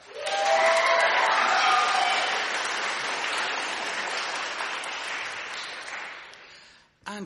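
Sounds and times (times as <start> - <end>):
cheers and whistles from studio audience: 0.0 - 2.6
thunderous applause from studio audience: 0.0 - 6.5.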